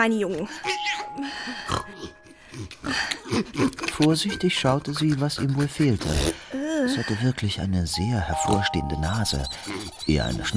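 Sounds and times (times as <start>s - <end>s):
speech: 0.0s - 10.5s
piglet grunting: 0.7s - 7.1s, 9.4s - 10.5s.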